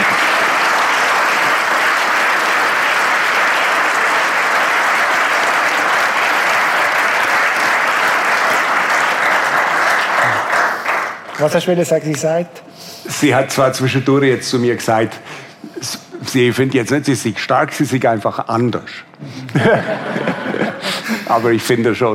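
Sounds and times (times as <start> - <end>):
audience applause: 0.0 - 11.7
speech: 11.4 - 20.3, 21.3 - 22.1
laughter: 19.2 - 21.5.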